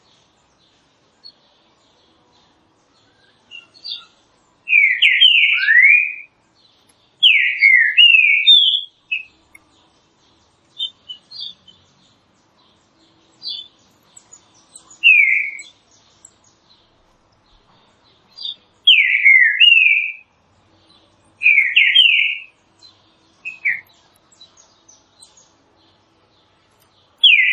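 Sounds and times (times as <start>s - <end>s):
green-winged saltator whistling: 3.1s - 6.3s, 7.2s - 9.3s, 14.8s - 15.7s, 18.4s - 20.2s, 21.4s - 22.5s, 27.2s - 27.5s.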